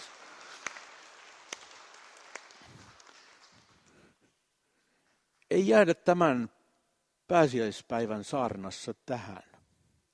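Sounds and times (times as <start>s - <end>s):
audience applause: 0.0s - 3.9s
speech: 5.5s - 6.6s, 7.3s - 9.5s.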